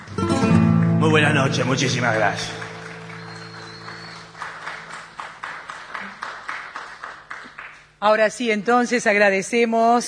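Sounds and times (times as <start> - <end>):
audience applause: 0.0 - 7.8
speech: 1.1 - 2.6, 8.0 - 10.0.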